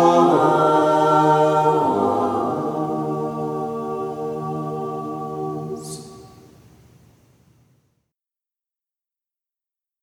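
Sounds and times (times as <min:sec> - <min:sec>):
choir chanting a Byzantine hymn in tone two: 0:00.0 - 0:06.5.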